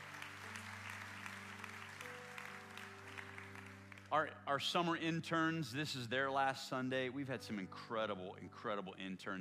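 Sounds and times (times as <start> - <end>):
audience applause: 0.0 - 4.1
speech: 4.1 - 9.3.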